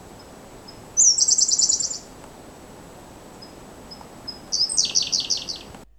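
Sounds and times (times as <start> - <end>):
Siberian blue robin singing trills: 0.2 - 2.1, 3.4 - 5.9.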